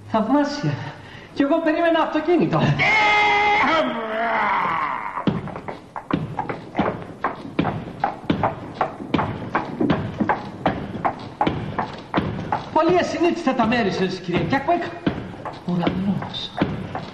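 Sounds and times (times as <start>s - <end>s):
speech: 0.1s - 4.0s, 12.8s - 15.0s, 15.7s - 16.7s
high wavering cry: 2.8s - 5.3s
horse-drawn carriage hooves clip-clopping: 5.2s - 17.1s.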